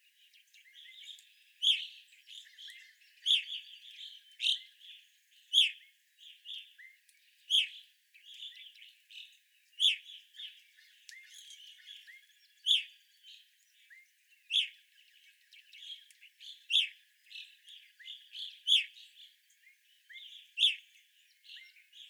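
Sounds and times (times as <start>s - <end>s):
evening grosbeak loud chirps: 0.3s - 22.0s.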